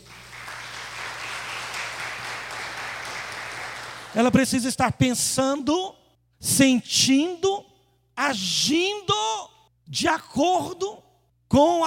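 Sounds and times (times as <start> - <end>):
audience applause: 0.0 - 4.3
speech: 4.1 - 7.5, 8.2 - 9.3, 9.9 - 11.8.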